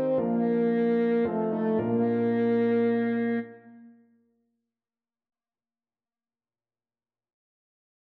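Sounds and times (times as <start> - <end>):
French horn: 0.0 - 3.8.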